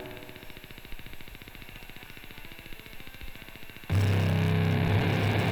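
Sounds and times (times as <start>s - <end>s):
malevolent synth: 3.9s - 5.4s.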